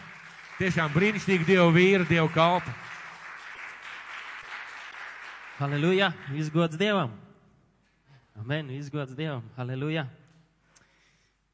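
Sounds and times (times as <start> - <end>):
audience applause: 0.0 - 6.6
speech: 0.6 - 2.9, 5.6 - 7.3, 8.4 - 10.2.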